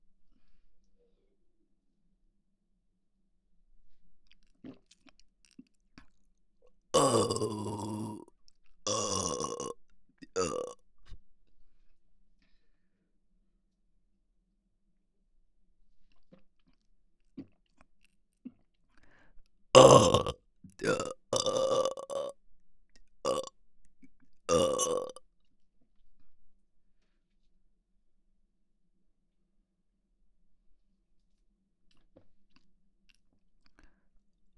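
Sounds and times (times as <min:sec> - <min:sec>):
person burping: 0:07.0 - 0:08.2, 0:08.9 - 0:10.8, 0:19.8 - 0:22.3, 0:23.3 - 0:23.5, 0:24.5 - 0:25.2.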